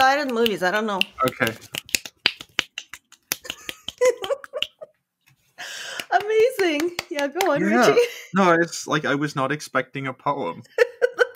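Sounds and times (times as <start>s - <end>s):
speech: 0.1s - 1.8s, 6.3s - 11.2s
finger snapping: 0.2s - 4.8s
laughter: 3.5s - 4.9s, 7.4s - 8.2s, 10.6s - 11.3s.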